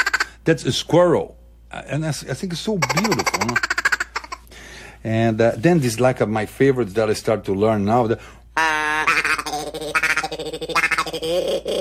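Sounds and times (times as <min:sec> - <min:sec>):
speech: 0:00.5 - 0:03.7, 0:05.0 - 0:08.7, 0:10.6 - 0:11.7
duck call being blown: 0:08.6 - 0:11.1.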